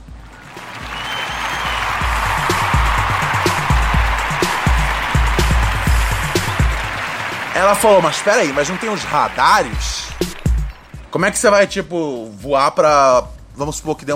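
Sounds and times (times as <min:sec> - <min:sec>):
round of applause: 0:00.0 - 0:11.1
speech: 0:07.6 - 0:10.3, 0:11.1 - 0:14.1.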